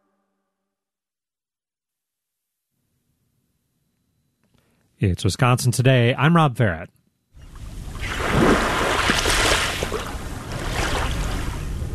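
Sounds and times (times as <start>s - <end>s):
speech: 5.0s - 7.0s
wind: 7.4s - 11.9s
Lake Michigan waves lapping at a sandy beach in Shorewood: 7.5s - 11.9s.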